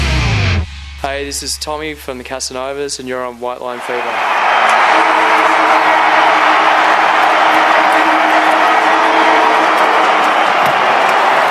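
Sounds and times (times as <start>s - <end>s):
speech: 1.0s - 6.7s
stadium crowd roaring at the end of the 2011 rugby league season: 3.7s - 11.5s.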